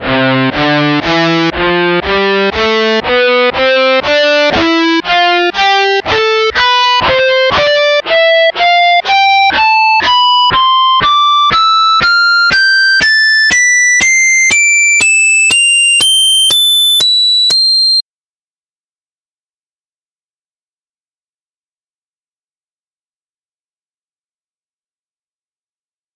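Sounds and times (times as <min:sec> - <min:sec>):
guitar harmonics scale: 0:00.0 - 0:18.0.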